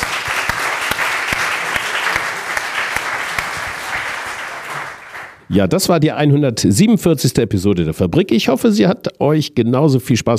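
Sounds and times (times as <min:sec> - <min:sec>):
audience applause: 0:00.0 - 0:05.4
speech: 0:05.5 - 0:10.3.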